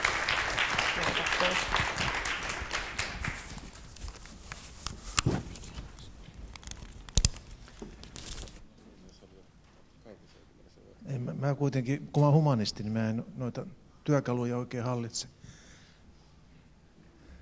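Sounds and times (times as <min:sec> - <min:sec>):
audience applause: 0:00.0 - 0:03.9
speech: 0:01.4 - 0:02.2, 0:11.5 - 0:15.4
scattered knocks and rustles: 0:03.5 - 0:08.6.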